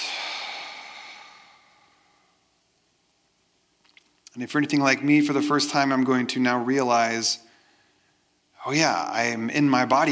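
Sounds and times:
deep breath in a relaxation exercise: 0:00.0 - 0:02.5, 0:07.4 - 0:08.4
speech: 0:04.4 - 0:07.5, 0:08.6 - 0:10.1.

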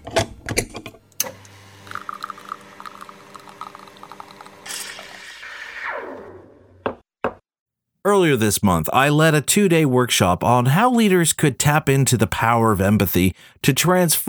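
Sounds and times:
espresso machine brewing a shot: 0:01.2 - 0:05.8
speech: 0:08.2 - 0:14.2.

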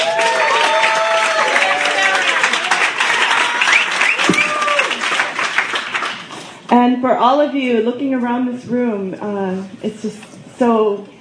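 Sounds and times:
crowd whooping and cheering: 0:00.0 - 0:05.5
audience applause at a poetry reading series' tenth anniversary: 0:00.0 - 0:06.4
speech: 0:06.8 - 0:11.1.

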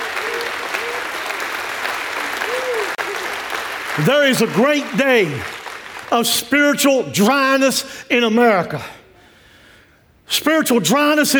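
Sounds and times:
audience clapping hands: 0:00.0 - 0:06.8
speech: 0:04.0 - 0:05.5, 0:06.1 - 0:09.0, 0:10.3 - 0:11.3.

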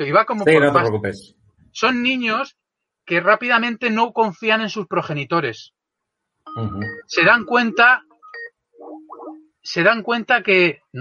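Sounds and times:
speech: 0:00.0 - 0:05.8, 0:06.6 - 0:08.1, 0:09.6 - 0:10.9
Skype incoming call electronic ringtone: 0:06.5 - 0:09.5.

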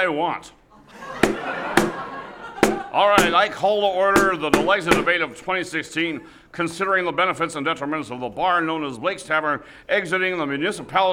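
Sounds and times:
speech: 0:00.0 - 0:00.6, 0:02.9 - 0:11.1
laughter: 0:00.7 - 0:05.0
Bent Paddle blonde beer can thumped on bar top as gavel: 0:01.2 - 0:03.5.

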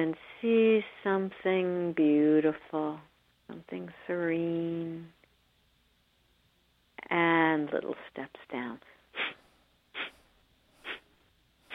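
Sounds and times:
speech: 0:00.0 - 0:05.2, 0:07.0 - 0:09.3
breathing out through the nostrils: 0:09.1 - 0:11.7.

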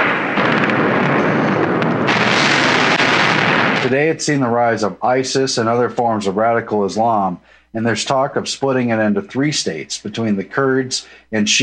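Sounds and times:
heavy gunfire in Baghdad during the 2003 Iraq War: 0:00.0 - 0:04.2
explosions in Baghdad during the 2003 Iraq War: 0:00.0 - 0:04.6
speech: 0:03.8 - 0:11.6.

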